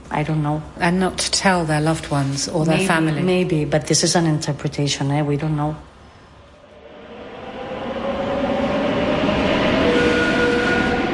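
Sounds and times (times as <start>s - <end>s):
speech: 0.2s - 5.9s
train rumbling on rails: 6.6s - 11.1s
thin metallic squealing of train: 7.6s - 11.1s.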